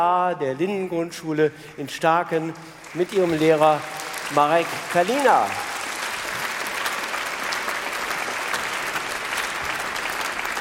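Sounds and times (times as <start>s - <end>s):
speech: 0.0s - 5.7s
audience applause: 2.6s - 10.5s.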